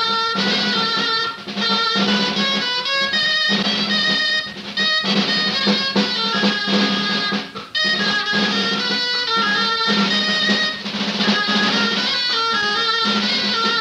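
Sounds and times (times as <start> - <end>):
traditional Spanish dance music from Valladolid: 0.0 - 13.7.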